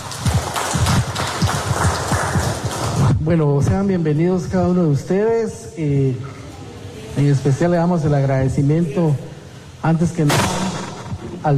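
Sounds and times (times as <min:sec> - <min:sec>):
applause: 0:00.0 - 0:03.2
speech: 0:03.2 - 0:06.4, 0:07.2 - 0:10.6.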